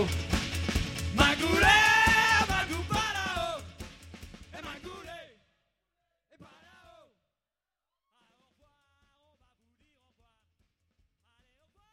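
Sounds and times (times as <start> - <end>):
folk music: 0.0 - 3.6.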